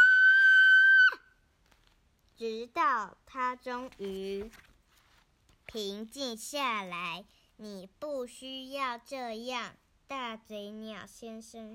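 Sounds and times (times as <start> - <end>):
voice acting out a child's shriek: 0.0 - 1.4
speech: 2.4 - 4.7, 5.7 - 11.7.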